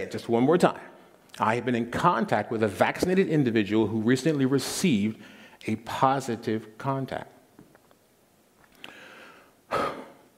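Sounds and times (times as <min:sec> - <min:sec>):
speech: 0:00.0 - 0:07.4
deep breath: 0:05.2 - 0:05.6, 0:08.7 - 0:10.3.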